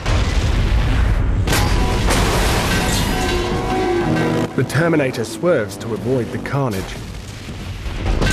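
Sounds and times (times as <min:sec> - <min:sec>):
explosion of a lorry of gas canisters in a Terminator film: 0:00.0 - 0:03.6, 0:06.8 - 0:08.3
speech: 0:04.6 - 0:07.1.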